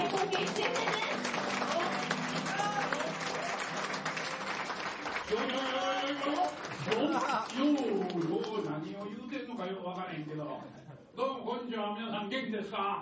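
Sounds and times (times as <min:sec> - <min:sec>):
audience applause: 0:00.0 - 0:09.2
speech: 0:05.3 - 0:13.0.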